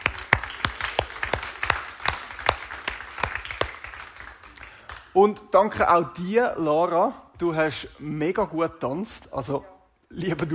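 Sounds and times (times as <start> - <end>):
audience applause for the band: 0.0 - 5.0
speech: 5.2 - 10.5.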